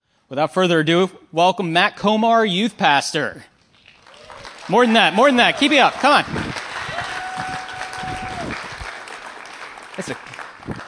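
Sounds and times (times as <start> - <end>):
speech: 0.3 - 3.5, 4.7 - 6.6, 10.0 - 10.3
audience clapping: 3.7 - 10.8.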